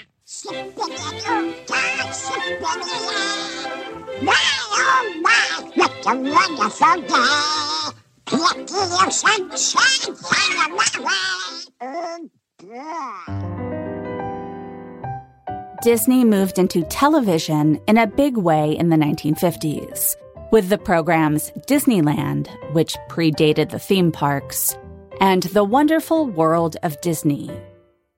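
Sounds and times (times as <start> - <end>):
cartoon duck character singing in a raspy quacking voice, 1948 animated short: 0.0 - 13.4
speech: 2.1 - 5.0, 6.0 - 13.7, 15.8 - 28.1.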